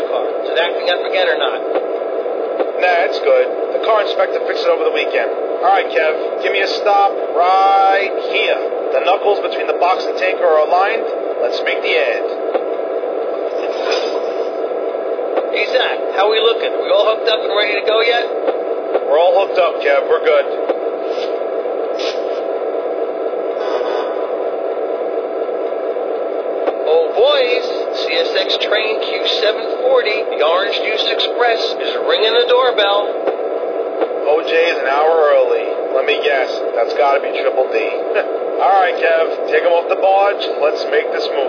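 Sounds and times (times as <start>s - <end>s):
MP15 electric trains: 0.0s - 41.4s.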